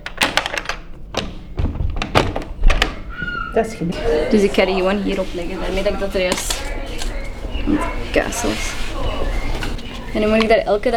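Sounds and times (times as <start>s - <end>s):
stuck door being opened thunking: 0.0s - 10.9s
laughter: 2.9s - 10.9s
speech: 3.6s - 6.8s, 7.7s - 9.1s, 10.1s - 10.9s.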